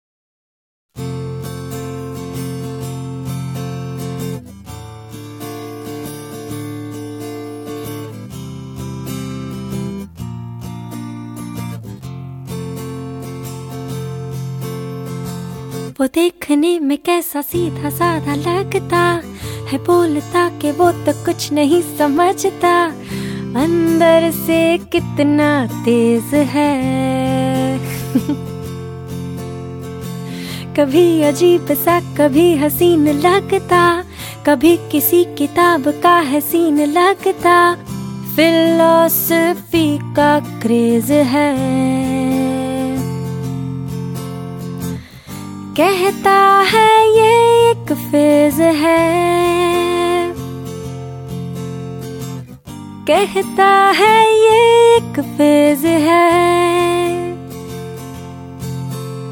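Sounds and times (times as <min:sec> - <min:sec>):
woman singing acoustic song: 0:01.0 - 0:59.2.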